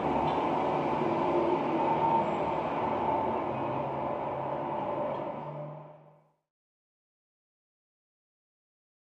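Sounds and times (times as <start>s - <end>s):
city traffic noise: 0.0s - 6.3s.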